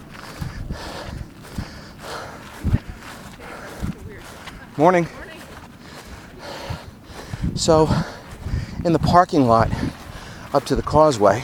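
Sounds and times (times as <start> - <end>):
runners' footsteps across the street: 0.0 - 11.4
speech: 4.8 - 5.2, 7.6 - 8.1, 8.8 - 9.9, 10.5 - 11.4.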